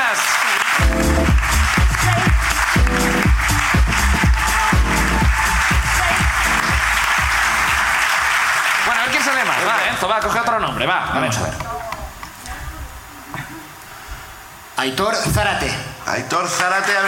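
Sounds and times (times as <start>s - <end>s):
applause: 0.0s - 10.4s, 16.5s - 17.0s
speech: 10.1s - 11.7s, 14.8s - 17.0s.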